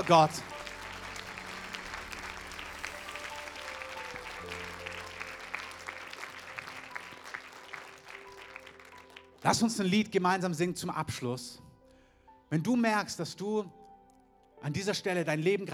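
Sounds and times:
speech: 0.0s - 0.5s, 9.4s - 11.6s, 12.5s - 13.8s, 14.6s - 15.7s
crowd applause: 0.0s - 9.7s.

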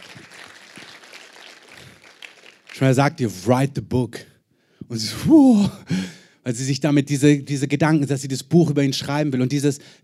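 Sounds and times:
audience applause: 0.0s - 3.0s
speech: 2.8s - 4.2s, 4.9s - 10.0s.

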